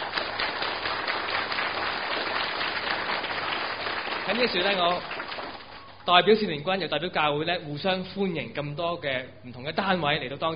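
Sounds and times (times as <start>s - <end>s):
audience applause: 0.0s - 6.1s
speech: 4.3s - 5.1s, 6.1s - 10.5s.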